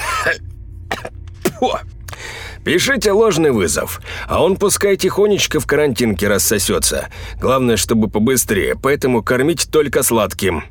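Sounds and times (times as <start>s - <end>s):
man hawking and clearing his throat: 0.0s - 1.8s
speech: 0.2s - 1.9s, 2.6s - 10.6s.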